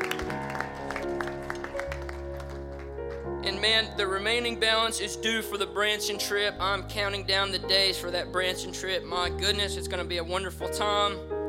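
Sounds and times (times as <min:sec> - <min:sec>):
audience hand clapping: 0:00.0 - 0:03.3
speech: 0:03.4 - 0:11.3.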